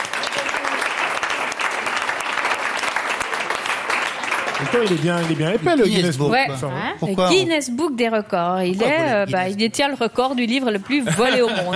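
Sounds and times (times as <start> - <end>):
audience applause: 0.0 - 5.9
speech: 4.6 - 11.7
laughter: 10.8 - 11.7.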